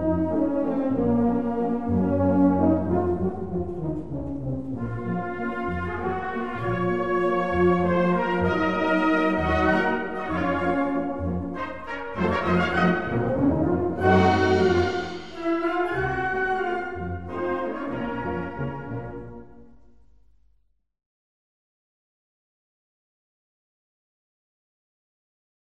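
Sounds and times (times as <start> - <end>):
waltz music: 0.0 - 19.7.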